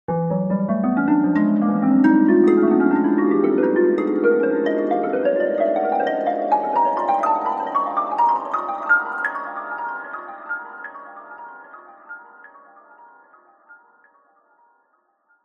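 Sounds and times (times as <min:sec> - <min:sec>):
heavenly dreamy glissando gone wrong: 0:00.1 - 0:12.0.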